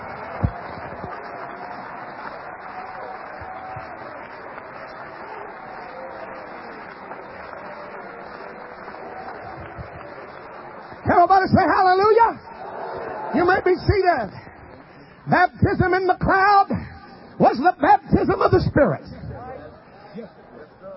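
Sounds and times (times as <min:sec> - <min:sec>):
large group clapping: 0:00.0 - 0:16.8
speech: 0:11.4 - 0:12.4, 0:13.5 - 0:14.4, 0:15.3 - 0:16.8, 0:17.4 - 0:19.2.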